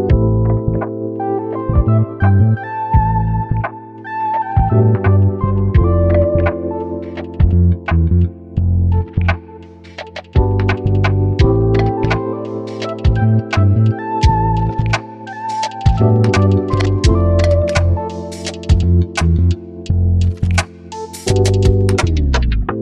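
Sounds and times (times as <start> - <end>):
jazzy music: 0.1 - 22.7.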